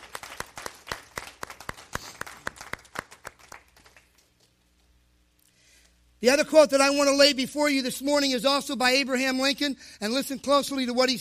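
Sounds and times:
audience applause: 0.0 - 4.2
speech: 6.2 - 11.1.

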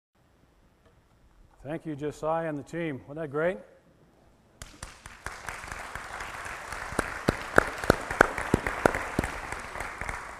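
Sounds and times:
speech: 1.6 - 3.7
crowd applauding: 4.6 - 10.3
one person's loud sharp handclaps: 4.6 - 10.3.

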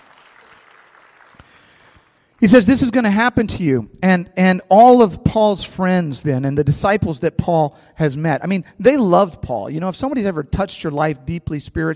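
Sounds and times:
audience applause: 0.0 - 2.4
speech: 2.4 - 11.9.

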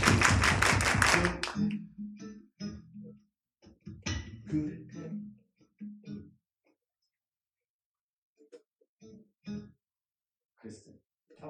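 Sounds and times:
hands clapping: 0.0 - 1.8.

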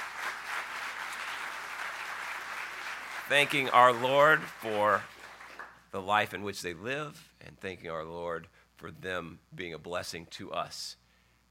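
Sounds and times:
audience applauding college graduates: 0.0 - 5.8
speech: 3.3 - 5.1, 5.9 - 11.0.

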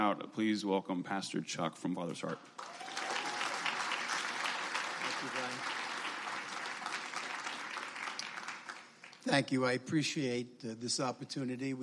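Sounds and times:
speech: 0.0 - 2.9, 5.2 - 5.8, 9.2 - 11.8
audience applause: 2.6 - 9.4.

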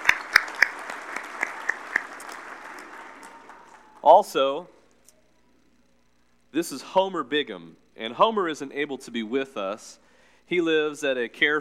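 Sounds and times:
audience applause welcoming a Bison football team player: 0.0 - 4.2
speech: 4.0 - 4.8, 6.5 - 11.5.

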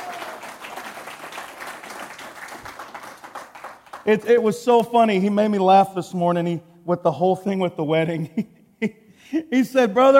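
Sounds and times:
crowd applauding: 0.0 - 4.6
speech: 4.0 - 10.1.

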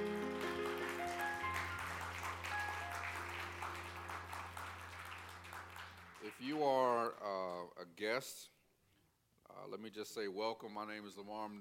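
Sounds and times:
sustained keyboard or organ tones: 0.0 - 6.0
audience hand clapping: 0.0 - 7.2
speech: 6.4 - 8.5, 9.6 - 11.6.

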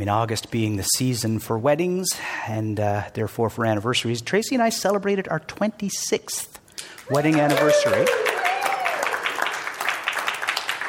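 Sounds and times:
speech: 0.0 - 8.3
audience applause: 7.0 - 10.8.

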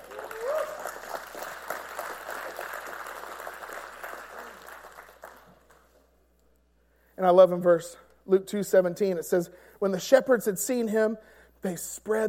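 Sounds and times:
audience applause: 0.0 - 5.8
speech: 7.2 - 12.2.

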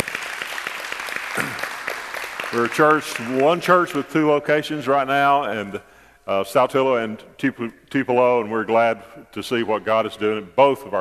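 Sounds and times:
audience clapping in praise: 0.0 - 4.1
speech: 2.5 - 10.9.

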